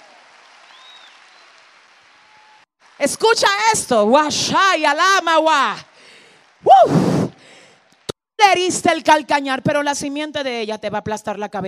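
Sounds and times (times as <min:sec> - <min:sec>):
audience applause: 0:00.0 - 0:03.7, 0:04.8 - 0:08.1
speech: 0:03.0 - 0:05.9, 0:06.7 - 0:07.1, 0:08.5 - 0:11.6.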